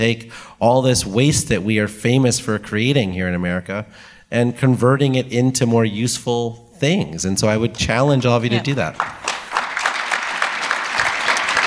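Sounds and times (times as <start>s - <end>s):
speech: 0.0s - 9.3s
audience clapping: 8.5s - 11.6s.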